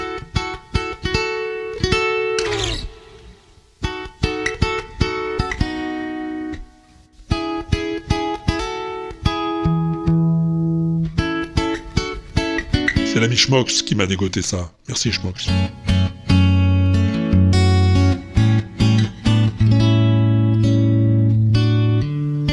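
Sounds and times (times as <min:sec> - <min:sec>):
instrumental cover version of a song: 0:00.0 - 0:22.5
speech: 0:13.3 - 0:16.1.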